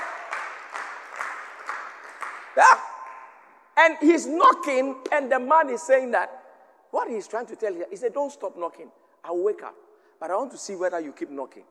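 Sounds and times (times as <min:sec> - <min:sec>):
audience clapping hands: 0:00.0 - 0:03.6
speech: 0:02.6 - 0:02.9, 0:03.8 - 0:11.7.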